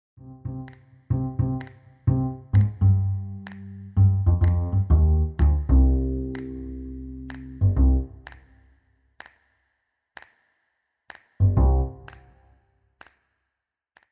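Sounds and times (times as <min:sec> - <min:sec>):
musical accompaniment: 0:00.3 - 0:08.1.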